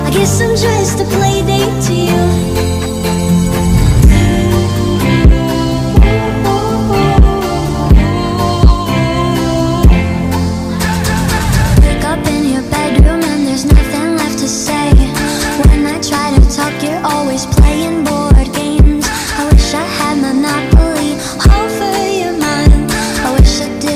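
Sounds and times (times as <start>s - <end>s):
background music ringtone: 0.0s - 23.9s.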